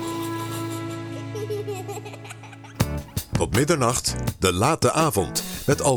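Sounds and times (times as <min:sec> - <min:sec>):
baby laughing in a song: 0:00.0 - 0:02.9
song: 0:00.0 - 0:03.6
speech: 0:03.4 - 0:05.9.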